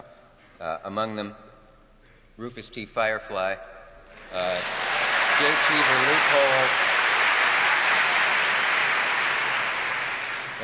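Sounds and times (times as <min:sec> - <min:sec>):
speech: 0:00.6 - 0:01.5, 0:02.4 - 0:03.7, 0:04.3 - 0:04.8, 0:05.4 - 0:06.9
audience applause: 0:04.2 - 0:10.6.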